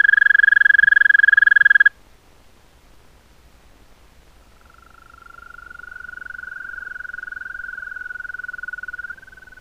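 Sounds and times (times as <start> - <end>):
European green toad Bufo viridis trilling: 0.0 - 1.9, 4.6 - 9.6.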